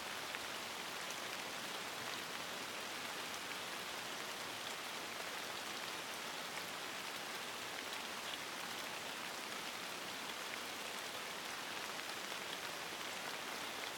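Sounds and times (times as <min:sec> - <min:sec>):
light rain: 0:00.0 - 0:13.9.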